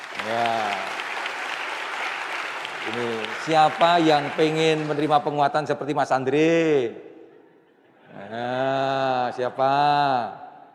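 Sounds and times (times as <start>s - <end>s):
audience clapping: 0.0s - 5.6s
speech: 0.3s - 0.7s, 2.8s - 7.1s, 9.3s - 10.4s.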